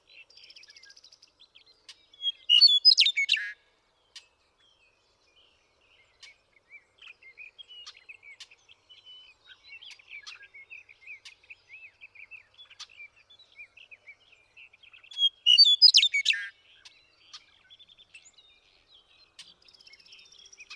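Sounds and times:
bird chirps: 0:00.0 - 0:20.7
western meadowlark singing: 0:00.0 - 0:20.7.

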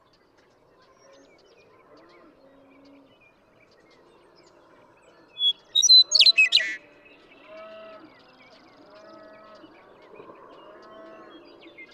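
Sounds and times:
western meadowlark singing: 0:05.4 - 0:06.8.

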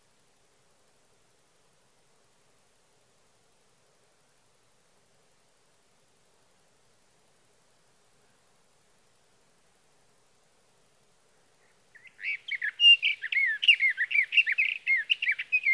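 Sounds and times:
sage thrasher: 0:12.0 - 0:15.7.

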